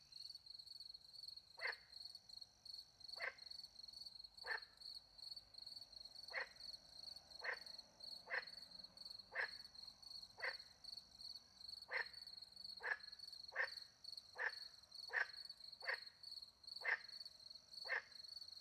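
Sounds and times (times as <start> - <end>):
frog croaks: 1.6 - 1.9, 3.2 - 3.6, 4.4 - 4.8, 6.2 - 6.7, 7.4 - 10.8, 11.8 - 18.4.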